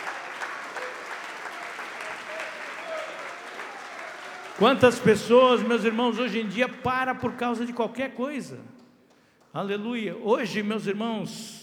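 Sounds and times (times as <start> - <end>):
audience clapping hands: 0.0 - 7.8
speech: 4.6 - 8.7, 9.5 - 11.6.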